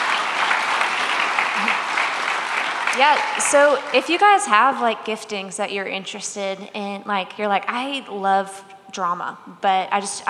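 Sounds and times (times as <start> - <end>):
applause sound effect: 0.0 - 4.4
speech: 3.0 - 10.2.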